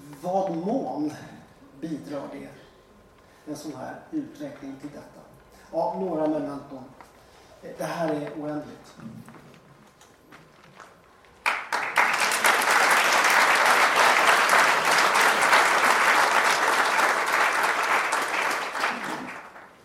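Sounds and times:
speech: 0.2 - 2.6, 3.4 - 9.4
seminar audience applause: 11.4 - 19.8.

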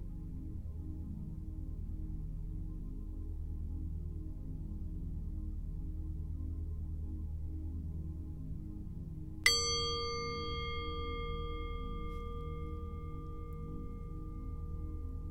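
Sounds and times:
soft steady low drone: 0.0 - 15.3
meditation bell struck once: 9.5 - 15.3.

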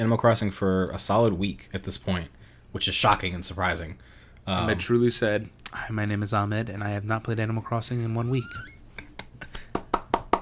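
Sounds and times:
speech: 0.0 - 8.7
hand claps: 9.0 - 10.4.

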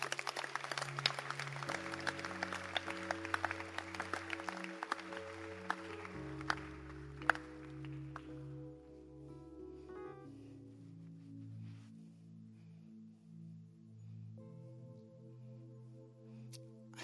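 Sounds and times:
audience clapping hands: 0.0 - 8.6
sustained low keyboard chords: 0.0 - 17.0.

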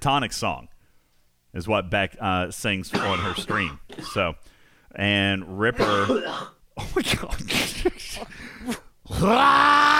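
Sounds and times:
speech: 0.0 - 0.7, 1.5 - 9.9
hawking up phlegm: 2.9 - 4.2
throat clearing: 3.0 - 4.3.

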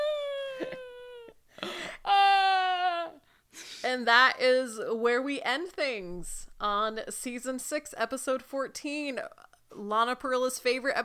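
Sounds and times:
woman wailing: 0.0 - 1.3, 2.1 - 3.2
woman sobbing gasp: 0.0 - 3.8
speech: 3.9 - 11.0.

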